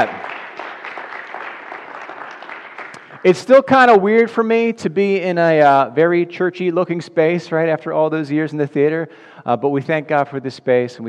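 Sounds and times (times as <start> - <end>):
speech: 0.0 - 0.2, 3.2 - 11.0
audience applause: 0.0 - 3.4.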